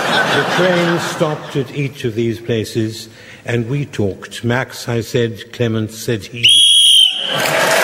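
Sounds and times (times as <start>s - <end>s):
laughter: 0.0s - 2.0s
speech: 0.6s - 7.7s
whistle marking end of round: 6.4s - 7.4s.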